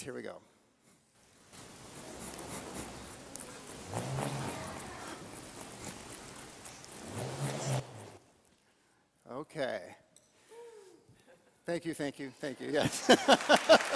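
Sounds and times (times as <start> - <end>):
speech: 0.0 - 0.6, 9.4 - 10.0, 11.7 - 13.9
bull roarer whirring: 2.1 - 8.2
laughter: 12.7 - 13.9.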